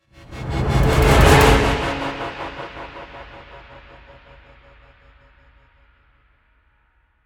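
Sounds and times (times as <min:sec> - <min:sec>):
triumphant music transition: 0:00.3 - 0:03.4.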